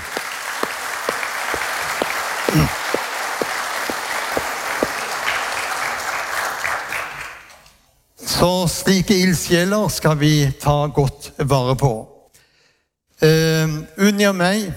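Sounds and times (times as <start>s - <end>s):
audience applause: 0.0s - 7.5s
speech: 2.5s - 2.8s, 8.4s - 12.1s, 14.1s - 14.7s.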